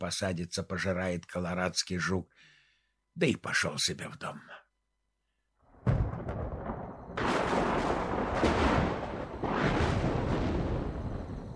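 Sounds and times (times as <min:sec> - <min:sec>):
speech: 0:00.0 - 0:02.6, 0:03.2 - 0:04.6
thunder rumbling: 0:05.7 - 0:11.5.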